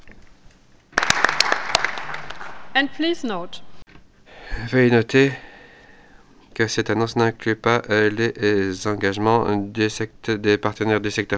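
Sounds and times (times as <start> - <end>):
audience applause at a donor pledging announcement: 1.0 - 2.7
speech: 2.8 - 3.7, 4.6 - 5.5, 6.6 - 11.3.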